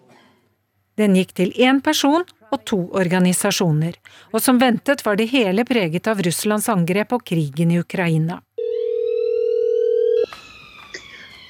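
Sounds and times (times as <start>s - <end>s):
speech: 1.0s - 8.5s
telephone tone: 8.6s - 11.4s.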